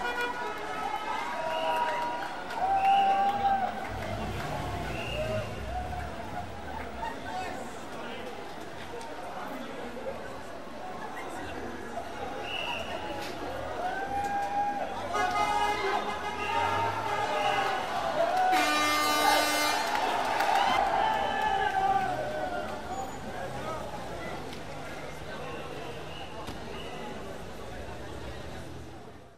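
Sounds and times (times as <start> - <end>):
jubilant crowd cheering: 0.0 - 8.4, 12.0 - 24.5.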